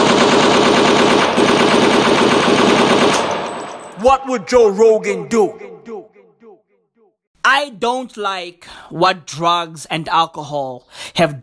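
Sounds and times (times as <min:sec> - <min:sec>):
automatic gunfire: 0:00.0 - 0:03.7
speech: 0:04.2 - 0:05.7, 0:07.4 - 0:11.4.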